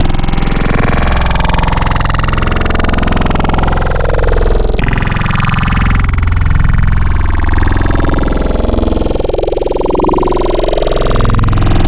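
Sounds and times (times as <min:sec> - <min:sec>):
growl wavetable synth: 0:00.0 - 0:11.8.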